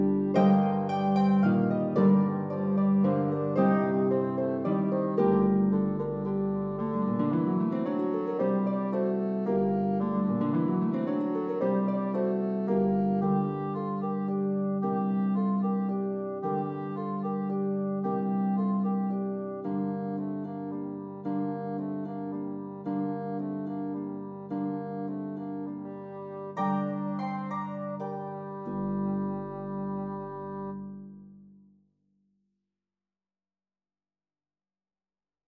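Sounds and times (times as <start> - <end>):
pedal harp: 0.0 - 31.1
bassoon: 0.0 - 31.2.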